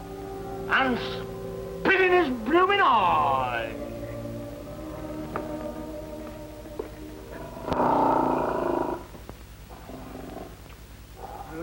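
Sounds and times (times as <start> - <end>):
speech: 0.7 - 3.8
big cat growling and snarling: 7.3 - 9.1, 9.7 - 10.6.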